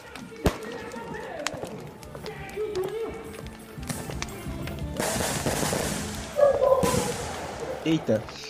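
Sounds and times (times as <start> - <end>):
voices murmuring: 0.0 - 5.2, 6.0 - 8.4
firecrackers exploding in the streets: 0.0 - 8.4
street noise: 0.0 - 8.4
speech: 7.9 - 8.4.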